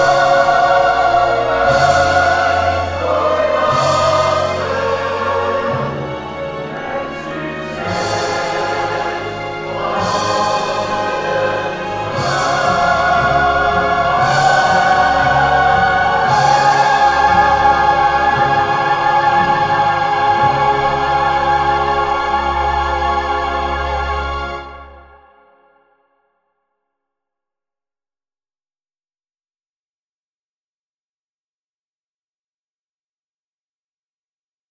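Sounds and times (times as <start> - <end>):
choir singing an anthem: 0.0 - 25.7.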